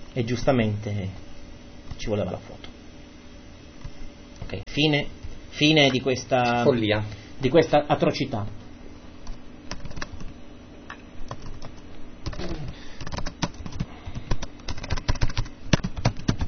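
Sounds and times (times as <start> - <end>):
faint hum: 0.0 - 16.4
speech: 0.2 - 1.3, 2.0 - 2.7, 4.5 - 8.6
typing on a computer keyboard: 9.7 - 10.3, 11.3 - 16.4.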